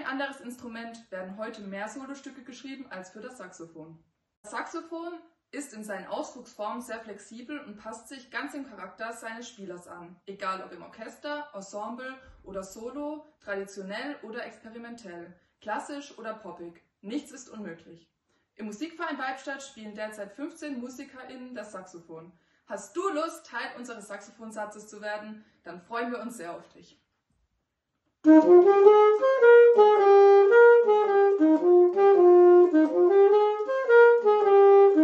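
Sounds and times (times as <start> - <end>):
saxophone: 28.2 - 35.0.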